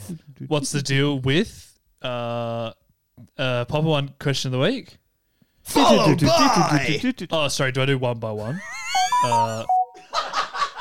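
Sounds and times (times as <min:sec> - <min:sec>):
speech: 0:00.1 - 0:05.0, 0:05.7 - 0:09.8
phone ringing or notification: 0:09.0 - 0:10.1.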